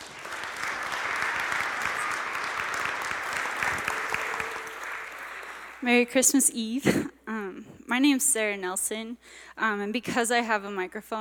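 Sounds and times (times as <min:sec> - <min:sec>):
crowd applause: 0:00.0 - 0:05.9
speech: 0:05.8 - 0:07.1, 0:07.9 - 0:11.2.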